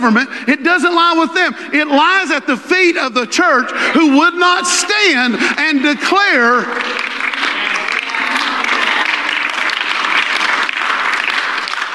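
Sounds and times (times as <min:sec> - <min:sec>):
speech: 0:00.0 - 0:07.0
audience applause: 0:05.6 - 0:11.9.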